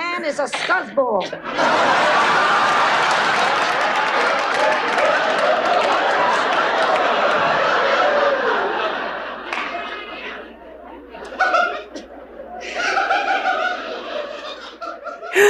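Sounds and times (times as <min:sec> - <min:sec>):
speech: 0:00.2 - 0:02.6
audience laughter at a line in a played scene: 0:01.4 - 0:15.4
audience chatter: 0:04.3 - 0:14.8.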